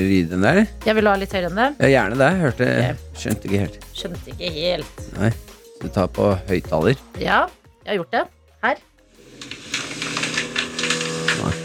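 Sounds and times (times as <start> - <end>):
speech: 0.0 - 9.6
sliding door grinding open with rough rasping rattle: 9.2 - 11.6.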